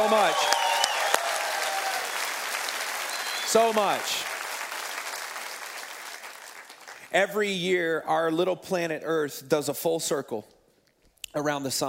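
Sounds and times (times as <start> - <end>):
audience applause: 0.0 - 7.1
speech: 3.5 - 4.3, 7.1 - 10.6, 11.3 - 11.8.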